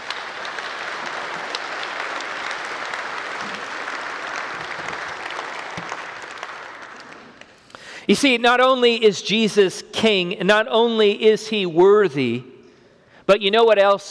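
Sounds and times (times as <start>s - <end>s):
audience applause: 0.0s - 7.6s
speech: 8.1s - 12.5s, 13.3s - 14.0s.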